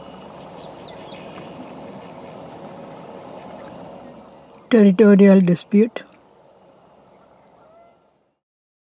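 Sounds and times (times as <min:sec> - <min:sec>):
speech: 0:04.7 - 0:06.1
Canada goose honking: 0:07.2 - 0:08.1.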